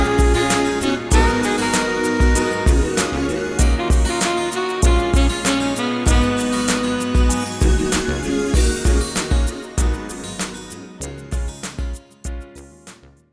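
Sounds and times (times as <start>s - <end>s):
MIDI horn music sample: 0.0s - 10.5s.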